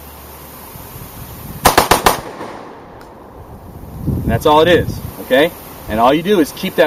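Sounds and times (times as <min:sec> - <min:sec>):
rifle with bump stock bump firing: 0:01.6 - 0:03.0
speech: 0:04.3 - 0:06.8.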